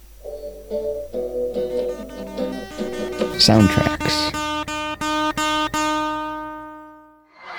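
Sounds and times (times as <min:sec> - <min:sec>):
speech: 0:00.7 - 0:01.4, 0:03.4 - 0:04.2
tonal jingle: 0:02.7 - 0:07.1.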